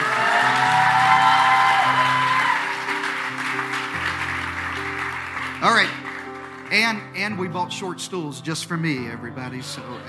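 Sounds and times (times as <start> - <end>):
Sunday church audience applauding: 0.0 - 7.1
speech: 6.9 - 10.0.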